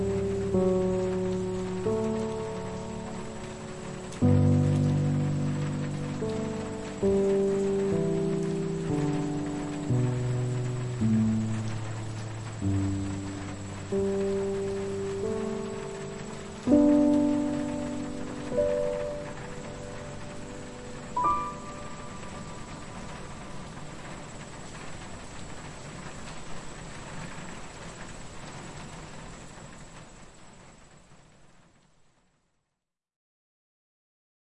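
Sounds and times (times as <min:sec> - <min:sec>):
night time piano playing: 0:00.0 - 0:25.9
night time rain: 0:00.0 - 0:32.8.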